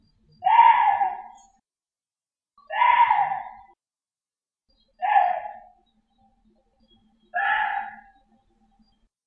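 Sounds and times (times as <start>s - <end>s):
Korean deer giving harsh scream-like cries: 0.4s - 1.4s, 2.7s - 3.6s, 5.0s - 5.7s, 7.4s - 8.1s.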